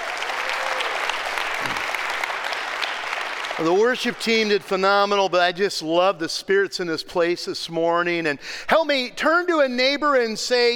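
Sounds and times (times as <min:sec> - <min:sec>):
audience applauding: 0:00.0 - 0:04.8
speech: 0:03.6 - 0:10.7.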